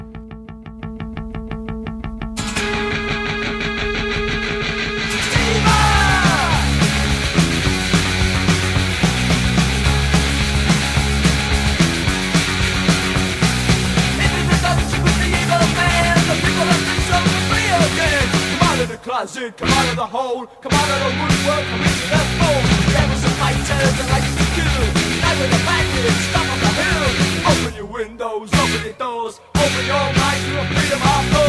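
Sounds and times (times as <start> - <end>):
loud punk rock song: 0.0 - 31.4
shouted vocals: 5.2 - 6.9
speech: 19.4 - 26.4.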